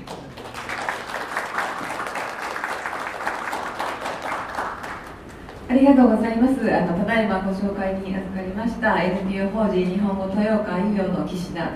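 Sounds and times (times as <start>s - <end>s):
audience applause: 0.0s - 5.7s
speech: 5.7s - 11.7s.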